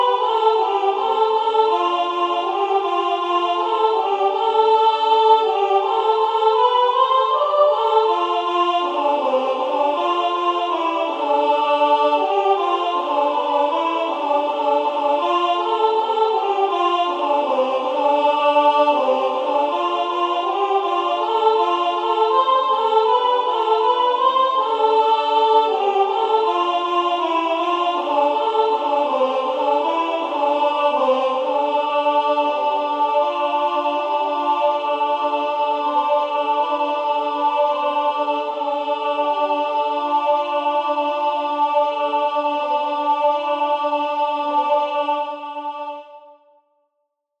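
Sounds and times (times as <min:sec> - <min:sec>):
women singing: 0:00.0 - 0:46.4.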